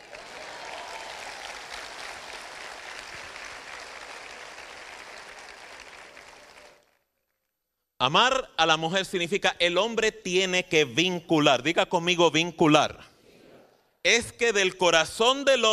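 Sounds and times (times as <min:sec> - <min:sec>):
crowd applauding: 0:00.0 - 0:07.2
speech: 0:08.0 - 0:13.1, 0:14.0 - 0:15.7.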